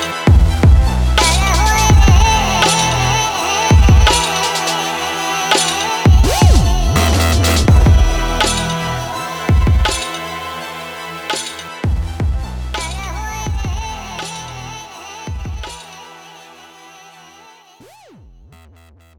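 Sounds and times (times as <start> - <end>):
German rap drum kit hits: 0.0 - 4.9, 5.5 - 10.4, 11.3 - 14.5, 15.3 - 15.9.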